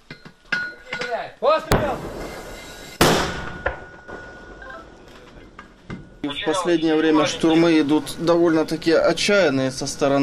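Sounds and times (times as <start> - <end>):
speech: 1.1 - 2.4, 6.3 - 10.2
mortar fire blasts: 1.7 - 3.8.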